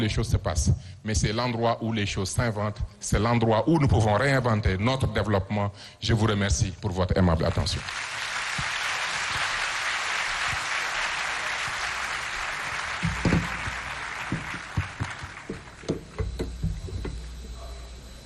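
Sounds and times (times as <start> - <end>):
speech: 0.0 - 8.7
audience applause: 7.8 - 16.2.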